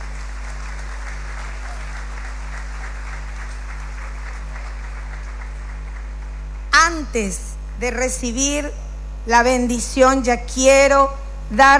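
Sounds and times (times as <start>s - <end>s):
crowd applause: 0.0s - 6.2s
speech: 6.9s - 11.7s.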